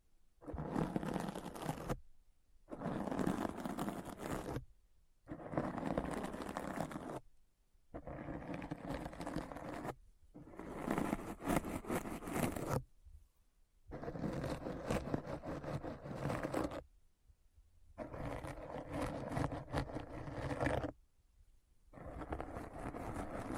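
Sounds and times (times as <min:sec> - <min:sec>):
rough scratching bursts: 0:00.4 - 0:02.0, 0:02.7 - 0:04.6, 0:05.3 - 0:07.2, 0:08.0 - 0:12.8, 0:13.9 - 0:16.8, 0:18.0 - 0:21.0, 0:22.0 - 0:23.5.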